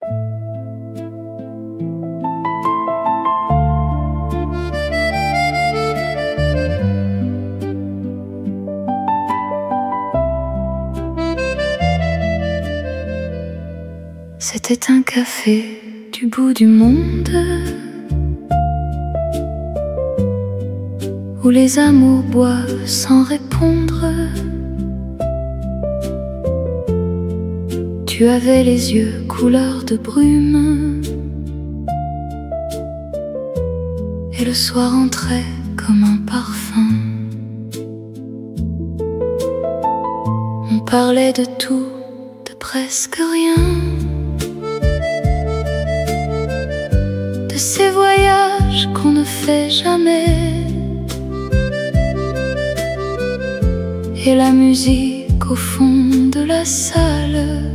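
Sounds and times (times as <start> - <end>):
emotional French song: 0.0 - 57.7.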